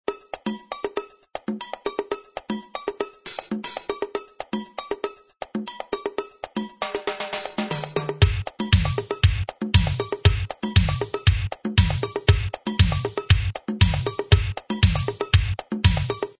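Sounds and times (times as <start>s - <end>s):
Akai XR10 drum machine: 0.2s - 16.3s.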